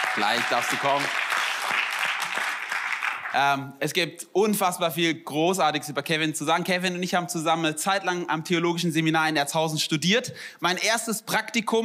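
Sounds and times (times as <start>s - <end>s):
audience applause: 0.0s - 3.5s
speech: 0.2s - 1.3s, 3.3s - 11.8s.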